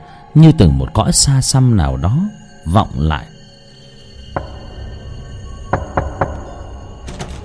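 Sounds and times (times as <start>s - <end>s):
speech: 0.4s - 3.3s
knocking on the wooden door of a house at night: 5.7s - 6.6s.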